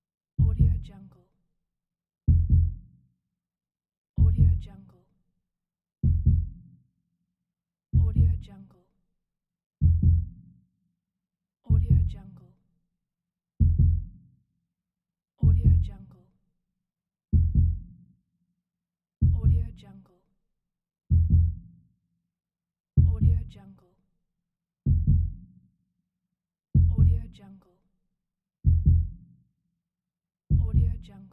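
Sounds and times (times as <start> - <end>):
heartbeat: 0.4 - 0.8, 2.3 - 2.8, 4.2 - 4.6, 6.0 - 6.6, 8.0 - 8.4, 9.8 - 10.4, 11.7 - 12.2, 13.6 - 14.1, 15.4 - 15.9, 17.4 - 17.9, 19.2 - 19.6, 21.1 - 21.6, 23.0 - 23.5, 24.9 - 25.4, 26.8 - 27.2, 28.6 - 29.2, 30.5 - 31.0.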